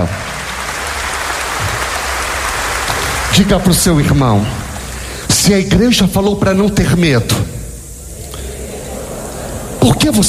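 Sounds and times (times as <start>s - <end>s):
church congregation applauding: 0.0s - 5.4s
speech: 3.4s - 4.6s, 5.4s - 7.6s, 9.8s - 10.2s.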